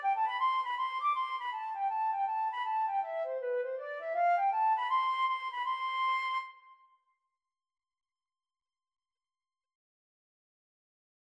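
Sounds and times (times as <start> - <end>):
flute playing: 0.0 - 6.7.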